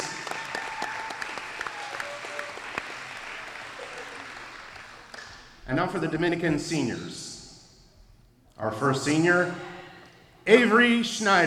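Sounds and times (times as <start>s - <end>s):
crowd applause: 0.0s - 5.5s
speech: 5.7s - 7.2s, 8.6s - 9.7s, 10.4s - 11.4s.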